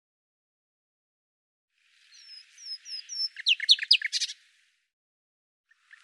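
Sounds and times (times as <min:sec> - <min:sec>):
bird song: 0:01.8 - 0:04.8, 0:05.7 - 0:06.0.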